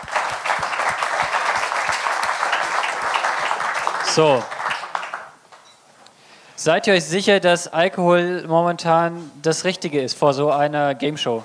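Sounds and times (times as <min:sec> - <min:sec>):
audience applause: 0:00.0 - 0:05.4
speech: 0:04.2 - 0:04.5, 0:06.6 - 0:11.4.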